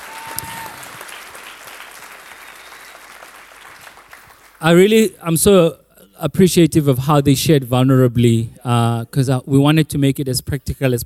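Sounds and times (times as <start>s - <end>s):
audience applause: 0.0s - 4.6s
speech: 4.6s - 11.0s.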